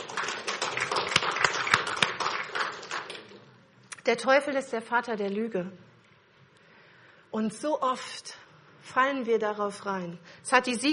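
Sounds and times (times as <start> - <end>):
audience applause: 0.0 - 3.5
speech: 4.1 - 5.9, 7.4 - 8.4, 9.0 - 10.9.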